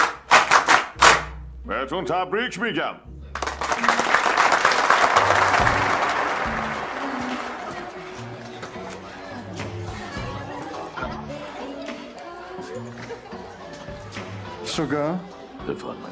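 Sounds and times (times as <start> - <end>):
audience clapping at a host's cue: 0.0 - 1.3, 3.3 - 10.1
speech: 1.7 - 3.2, 14.8 - 16.1
laughter: 3.7 - 14.4.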